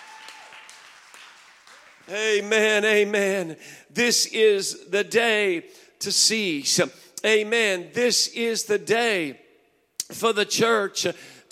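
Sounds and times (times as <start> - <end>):
audience clapping hands: 0.0 - 2.5
speech: 2.1 - 9.4, 10.1 - 11.5.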